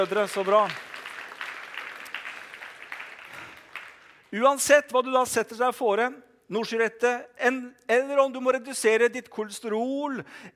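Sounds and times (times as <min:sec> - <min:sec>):
speech: 0:00.0 - 0:00.9, 0:04.3 - 0:10.5
audience applause: 0:00.0 - 0:04.3.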